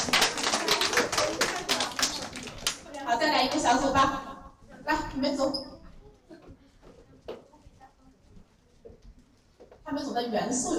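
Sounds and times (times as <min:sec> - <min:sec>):
applause in a classroom for a group of students: 0:00.0 - 0:03.8
speech: 0:03.1 - 0:04.3, 0:04.9 - 0:05.7, 0:10.2 - 0:10.7.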